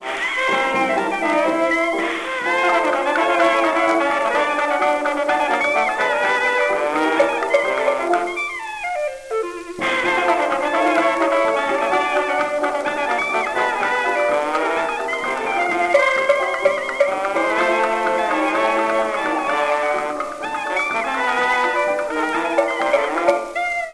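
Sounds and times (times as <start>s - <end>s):
jukebox music: 0.0s - 23.9s.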